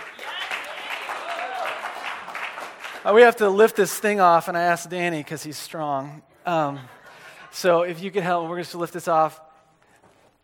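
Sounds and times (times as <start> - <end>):
audience applause: 0.0 - 3.3
speech: 3.0 - 9.4.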